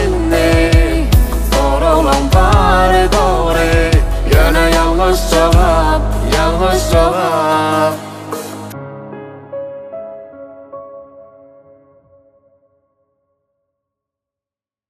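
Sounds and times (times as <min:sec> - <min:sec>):
acoustic music: 0:00.0 - 0:11.5.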